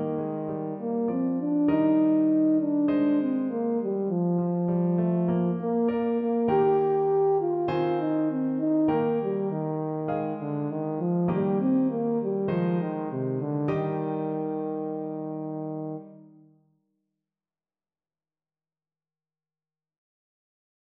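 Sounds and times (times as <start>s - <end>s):
tenor horn: 0.2s - 4.6s, 5.4s - 16.4s.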